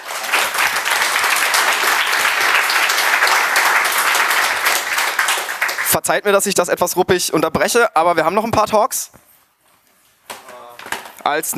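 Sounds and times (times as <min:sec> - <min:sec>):
audience applause: 0:00.0 - 0:06.0
speech: 0:05.9 - 0:09.2, 0:11.2 - 0:11.5.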